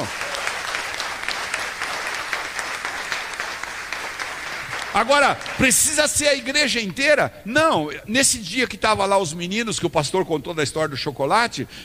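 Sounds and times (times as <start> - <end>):
audience applause: 0.0 - 6.1
speech: 5.0 - 11.8.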